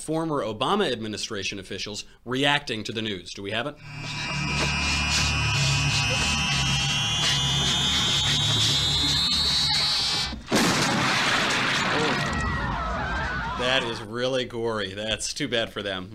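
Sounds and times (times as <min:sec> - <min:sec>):
speech: 0:00.0 - 0:04.8, 0:05.9 - 0:06.4, 0:13.7 - 0:16.1
cartoonish head-exploding sound effect: 0:05.7 - 0:13.2.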